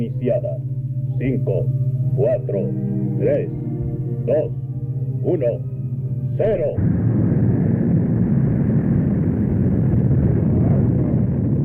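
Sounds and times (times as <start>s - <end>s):
spaceship propulsion acceleration effect: 0.0s - 11.6s
speech: 0.1s - 4.6s, 5.2s - 5.7s, 6.4s - 7.2s.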